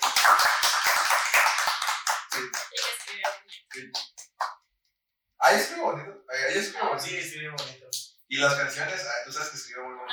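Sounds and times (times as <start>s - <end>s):
applause: 0.0s - 4.6s
speech: 0.2s - 1.4s, 2.4s - 4.0s, 5.5s - 10.0s.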